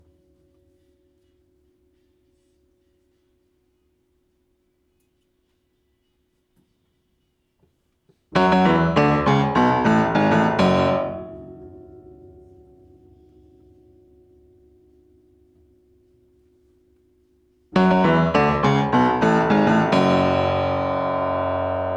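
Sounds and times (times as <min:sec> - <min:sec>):
piano: 0:08.3 - 0:14.5, 0:17.7 - 0:21.9.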